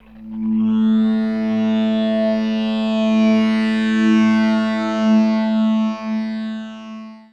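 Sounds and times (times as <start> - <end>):
guitar textures: 0.0 - 7.2.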